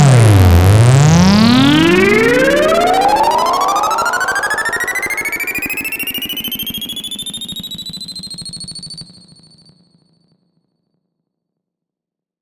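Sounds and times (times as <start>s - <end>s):
MOOG MAVIS synth with stereo echo reverb: 0.0s - 7.0s.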